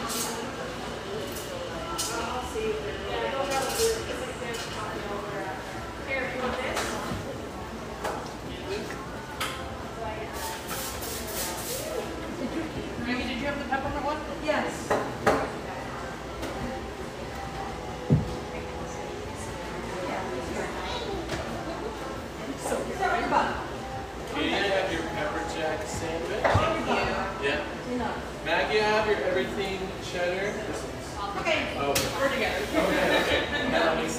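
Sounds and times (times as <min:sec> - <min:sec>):
café murmur of many overlapping voices: 0:00.0 - 0:34.1
clinks of dishes and cutlery: 0:03.4 - 0:04.9
laughter: 0:32.7 - 0:34.1.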